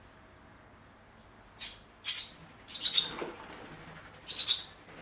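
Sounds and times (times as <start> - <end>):
barn swallows twittering in flight in an open house garage: 1.5 - 3.3, 4.1 - 4.9.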